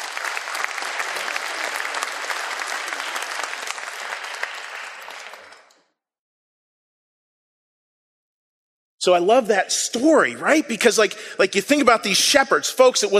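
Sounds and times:
audience applause: 0.0 - 5.8
speech: 9.0 - 13.1.

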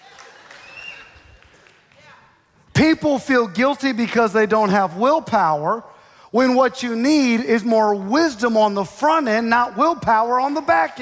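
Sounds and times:
scattered audience clapping: 0.0 - 2.4
speech: 2.8 - 11.0.

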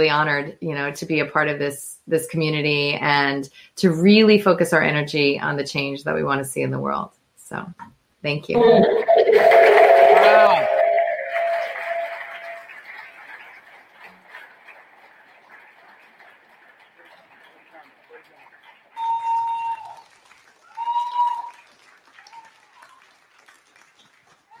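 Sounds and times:
speech: 0.0 - 9.4
bell-like chime tones: 8.6 - 12.6
audience applause: 8.6 - 24.5.

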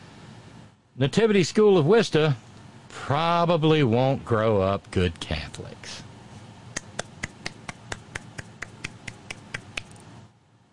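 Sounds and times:
speech: 1.0 - 6.1
quiet golf clap: 6.8 - 10.0.

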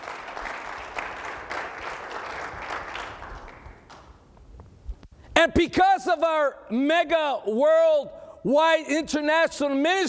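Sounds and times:
audience applause: 0.0 - 4.1
speech: 5.4 - 10.0.

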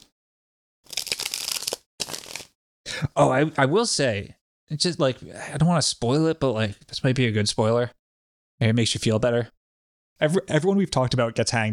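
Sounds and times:
tarot card being drawn from a deck: 0.9 - 2.6
speech: 3.0 - 8.0, 8.6 - 9.6, 10.2 - 11.7.

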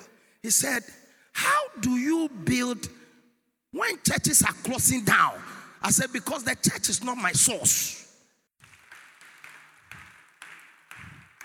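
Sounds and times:
speech: 0.4 - 3.0, 3.7 - 8.1
crowd clapping in rhythm: 8.6 - 11.4.

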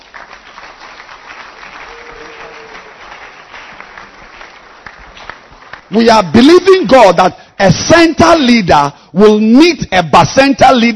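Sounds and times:
audience applause: 0.0 - 6.1
speech: 5.9 - 10.9.

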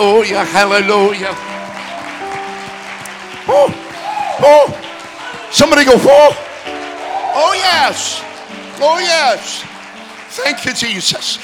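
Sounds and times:
speech: 0.0 - 1.5, 3.5 - 3.8, 4.4 - 4.8, 5.5 - 6.4, 7.4 - 9.7, 10.3 - 11.4
people clapping hands: 0.0 - 11.4.

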